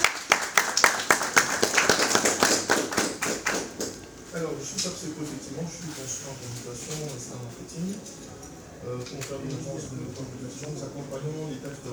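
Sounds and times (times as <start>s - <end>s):
audience applause: 0.0s - 4.1s
speech: 4.6s - 11.9s.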